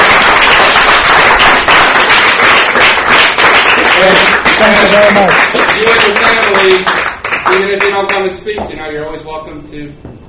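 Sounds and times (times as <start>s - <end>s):
round of applause: 0.0s - 8.2s
speech: 4.0s - 10.0s.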